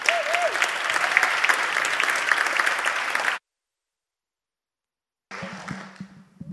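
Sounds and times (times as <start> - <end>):
church congregation clapping for a member called up to speak: 0.0 - 3.4, 5.3 - 6.4.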